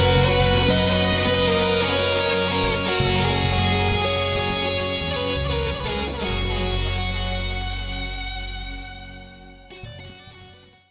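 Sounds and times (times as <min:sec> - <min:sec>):
bagpipes: 0:00.0 - 0:07.5.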